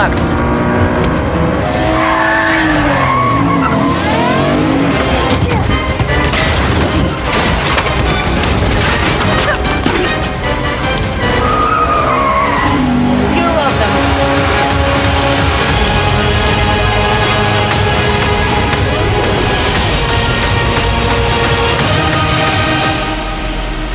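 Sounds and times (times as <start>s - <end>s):
car engine revving and pulling away: 0.0s - 9.0s, 9.6s - 23.9s
tires screeching and skidding: 0.0s - 23.3s.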